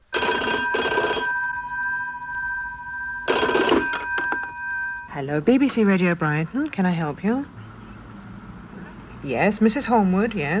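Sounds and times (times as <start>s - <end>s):
old-fashioned telephone bell ringing: 0.0s - 5.2s
speech: 5.2s - 7.6s, 9.2s - 10.5s.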